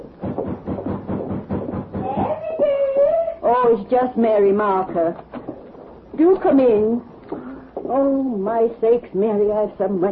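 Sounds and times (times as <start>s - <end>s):
knocking on a door: 0.2s - 2.4s
speech: 3.7s - 5.3s, 6.2s - 7.1s, 7.9s - 10.1s.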